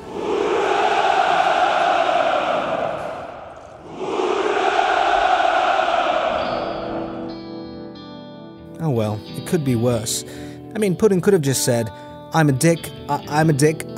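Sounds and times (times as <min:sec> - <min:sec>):
large crowd cheering and rejoicing: 0:00.0 - 0:07.3
speech: 0:09.5 - 0:13.9.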